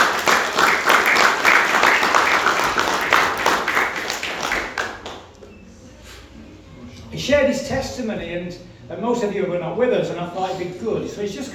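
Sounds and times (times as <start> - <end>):
audience applause: 0.0 - 5.3
speech: 7.8 - 11.5.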